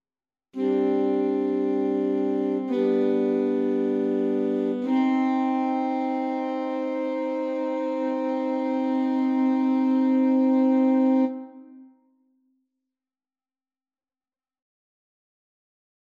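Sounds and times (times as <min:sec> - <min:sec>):
classical prelude played on alto saxophone: 0:00.6 - 0:12.0.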